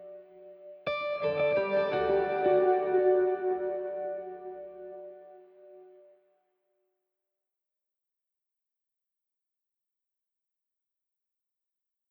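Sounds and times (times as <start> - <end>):
atmospheric electric street guitar: 0.0 - 6.1.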